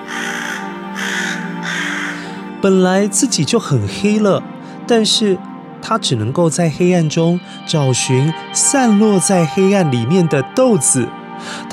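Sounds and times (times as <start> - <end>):
crow cawing: 0.0 - 2.5
speech: 2.6 - 11.7.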